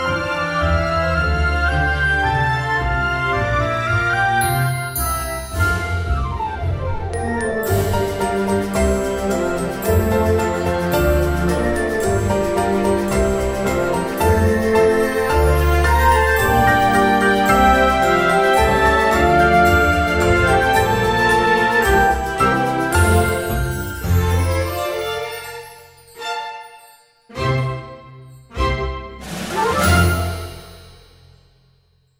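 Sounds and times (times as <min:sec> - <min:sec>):
instrumental music: 0:00.0 - 0:31.6.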